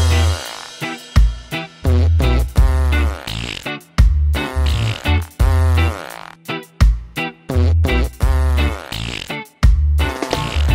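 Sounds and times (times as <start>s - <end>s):
farts: 0.2s - 1.0s, 1.8s - 3.8s, 4.4s - 6.4s, 7.5s - 10.7s.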